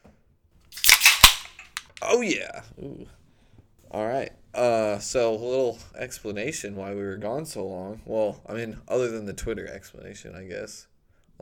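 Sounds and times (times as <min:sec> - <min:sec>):
beer cans cracking open: 0:00.7 - 0:02.1
speech: 0:02.0 - 0:03.2, 0:03.9 - 0:11.4.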